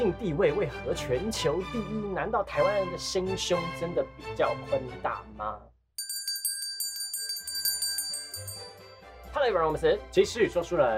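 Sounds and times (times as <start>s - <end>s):
speech: 0.1s - 5.7s, 9.3s - 10.9s
notification bell sound effect tinkling: 6.0s - 9.0s.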